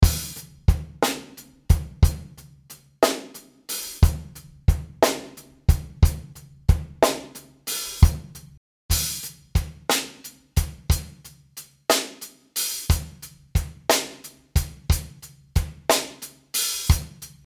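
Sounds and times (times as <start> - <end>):
snare drum: 0.0 - 2.4, 3.0 - 11.3, 11.9 - 17.4.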